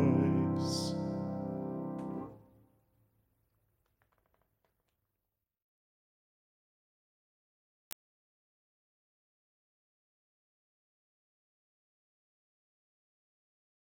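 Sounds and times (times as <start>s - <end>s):
lullaby: 0.0s - 2.2s.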